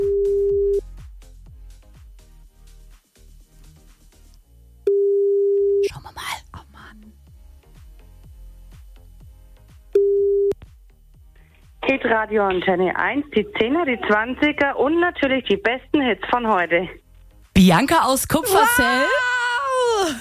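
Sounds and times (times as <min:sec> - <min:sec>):
telephone ringing tone on the line: 0:00.0 - 0:00.8, 0:04.9 - 0:05.8, 0:10.0 - 0:10.6
speech: 0:12.1 - 0:17.0, 0:17.6 - 0:19.3.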